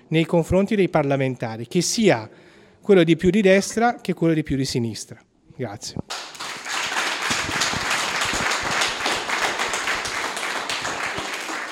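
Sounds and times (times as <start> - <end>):
speech: 0.1 - 6.2
audience applause: 6.1 - 11.6.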